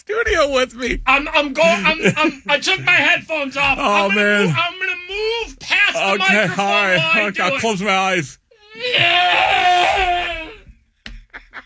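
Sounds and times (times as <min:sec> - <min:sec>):
speech: 0:00.0 - 0:09.5
laughter: 0:00.0 - 0:11.6
voice imitating a TIE fighter's engine scream: 0:08.6 - 0:10.7.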